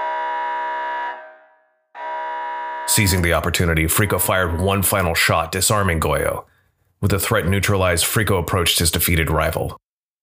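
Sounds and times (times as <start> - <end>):
harsh train alarm blaring: 0.0 - 3.3
speech: 2.9 - 9.8.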